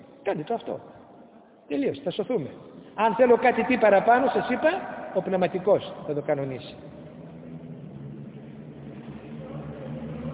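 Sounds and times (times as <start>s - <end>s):
speech: 0.2s - 1.0s, 1.7s - 6.9s
motorcycle passing by: 3.5s - 10.3s.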